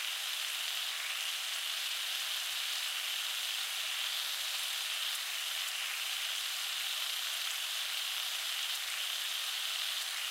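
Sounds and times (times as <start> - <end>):
household stove cooking sizzle: 0.0 - 10.2.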